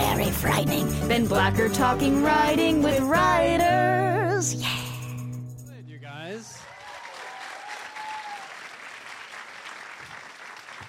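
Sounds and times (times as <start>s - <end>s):
speech: 0.6s - 4.8s
audience applause: 6.6s - 10.8s
cheer or whistle: 6.9s - 8.5s.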